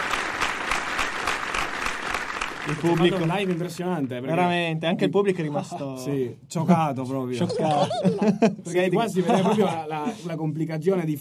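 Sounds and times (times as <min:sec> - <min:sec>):
live audience applause: 0:00.0 - 0:04.6
speech: 0:02.6 - 0:11.1
laughter: 0:05.3 - 0:06.1, 0:07.3 - 0:10.3.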